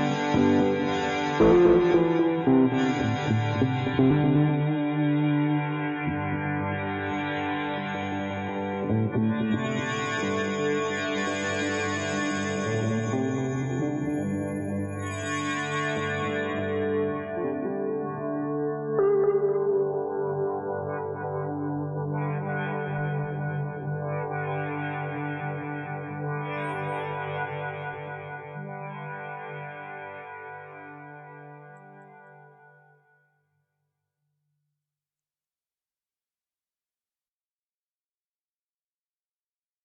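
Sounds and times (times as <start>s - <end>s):
bass: 0.0s - 29.8s.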